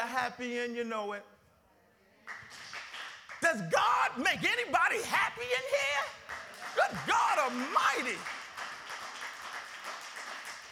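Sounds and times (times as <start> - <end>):
speech: 0.2 - 1.4, 3.4 - 8.4
crowd clapping: 2.3 - 3.5, 5.5 - 10.7.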